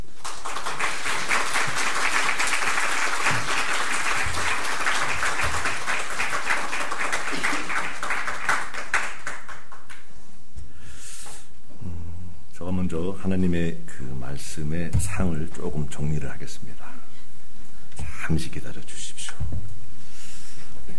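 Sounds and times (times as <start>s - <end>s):
audience applause: 0.0s - 10.0s
speech: 13.3s - 16.9s, 18.2s - 19.5s.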